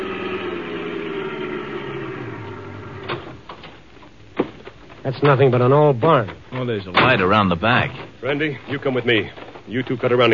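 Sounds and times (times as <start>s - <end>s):
car engine running while driving: 0.0s - 3.6s
speech: 5.0s - 10.3s.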